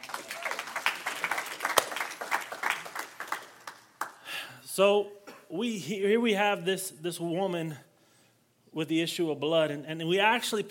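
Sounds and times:
audience clapping hands: 0.0s - 4.3s
speech: 4.8s - 7.9s, 8.7s - 10.7s.

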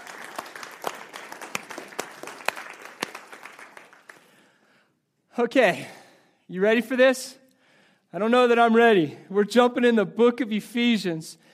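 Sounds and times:
audience applause: 0.0s - 4.4s
speech: 5.4s - 7.4s, 8.1s - 11.5s.

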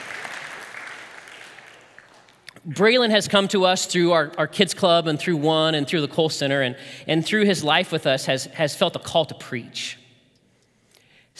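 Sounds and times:
round of applause: 0.0s - 2.5s
speech: 2.6s - 10.0s.

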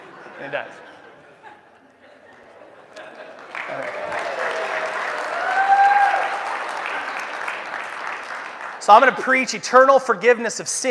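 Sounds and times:
laughter: 0.0s - 4.8s
speech: 0.4s - 0.9s, 3.7s - 4.0s, 8.8s - 10.8s
audience applause: 3.0s - 9.5s.

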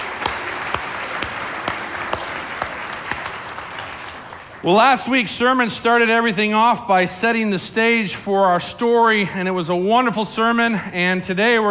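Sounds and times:
audience applause: 0.0s - 4.8s
speech: 4.6s - 11.6s.

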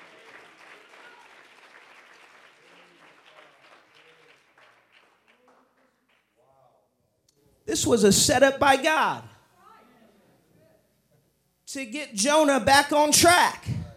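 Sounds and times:
audience clapping hands: 0.0s - 6.4s
speech: 7.7s - 9.3s, 11.8s - 13.8s.

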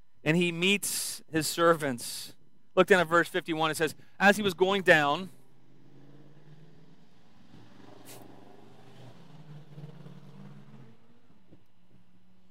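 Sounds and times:
speech: 0.2s - 5.4s
motorcycles passing by outside: 5.0s - 12.5s.

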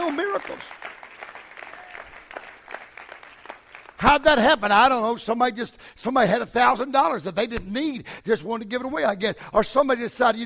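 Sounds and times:
audience clapping hands: 0.0s - 4.4s
speech: 0.1s - 0.8s, 4.0s - 10.4s.

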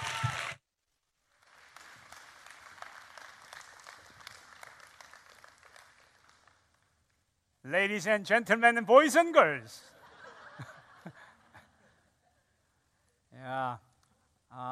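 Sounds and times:
audience applause for a pastor: 0.0s - 0.6s, 1.4s - 6.6s
speech: 7.7s - 9.9s
laughter: 9.9s - 12.1s.

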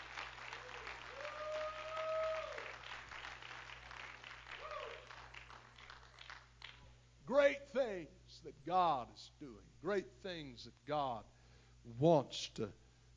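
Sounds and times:
audience clapping hands: 0.0s - 6.9s
speech: 7.3s - 12.8s.

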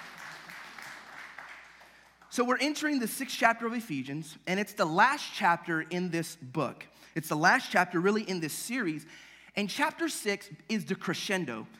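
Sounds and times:
crowd applauding: 0.0s - 2.3s
speech: 2.4s - 11.7s.

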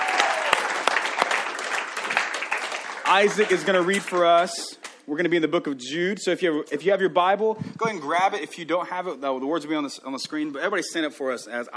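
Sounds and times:
audience applause: 0.0s - 4.6s
speech: 3.1s - 11.7s.

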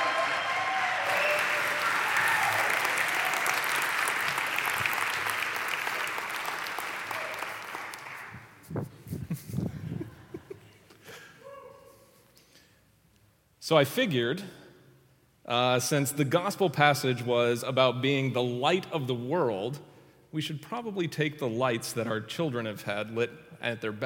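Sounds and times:
church congregation at OKC First Church applauding to welcome the preacher: 0.0s - 8.6s
speech: 13.7s - 14.6s, 15.5s - 24.0s.

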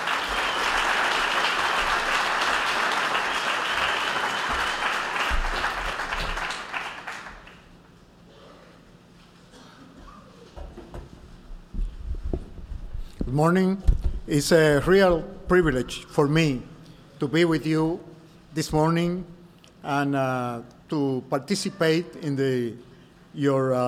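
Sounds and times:
audience applause at a Mission Sunday church service welcoming a speaker: 0.0s - 7.7s
speech: 13.4s - 23.8s.

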